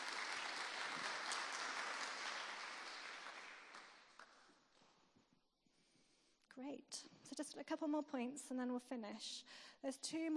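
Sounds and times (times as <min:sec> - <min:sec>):
audience applause: 0:00.0 - 0:04.4
speech: 0:06.6 - 0:10.3.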